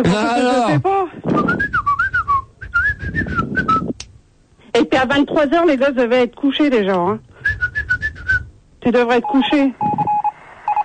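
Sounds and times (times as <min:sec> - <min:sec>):
speech: 0:00.0 - 0:00.9, 0:04.8 - 0:07.3, 0:08.8 - 0:09.8
person whistling: 0:01.4 - 0:04.0, 0:07.4 - 0:08.5.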